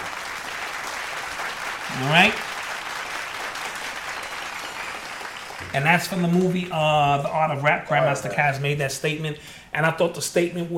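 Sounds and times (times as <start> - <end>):
crowd applauding: 0.0 - 7.2
speech: 2.0 - 2.5, 5.8 - 10.7.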